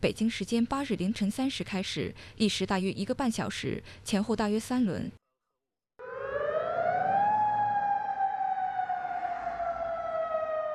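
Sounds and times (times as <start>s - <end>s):
speech: 0.0s - 5.2s
air raid siren in Amman, Jordan: 6.0s - 10.7s.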